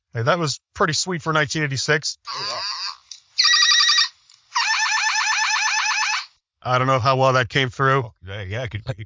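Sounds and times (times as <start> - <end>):
speech: 0.1 - 2.6, 6.6 - 9.0
battery-powered transforming robot toy electronic sound effects: 2.3 - 6.3.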